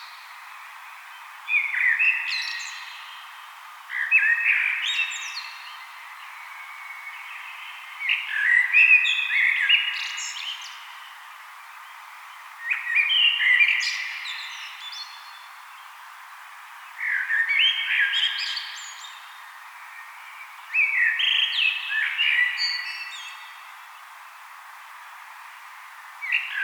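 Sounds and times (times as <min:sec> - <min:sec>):
common blackbird song: 0:00.0 - 0:24.4, 0:25.0 - 0:26.6.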